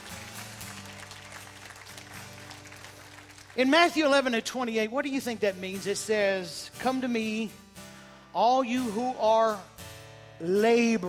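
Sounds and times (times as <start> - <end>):
crowd clapping: 0.0 - 4.5
speech: 3.6 - 7.6, 8.4 - 9.7, 10.4 - 11.0.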